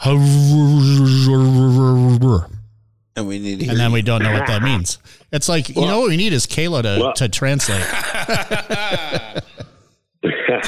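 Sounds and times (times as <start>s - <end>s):
speech: 0.0s - 0.7s, 2.3s - 2.6s, 3.2s - 10.6s
voice imitating garbled phone audio: 0.0s - 2.6s, 3.4s - 5.0s, 5.8s - 6.1s, 6.9s - 7.8s, 10.2s - 10.6s
laughter: 3.6s - 4.8s, 7.0s - 10.6s.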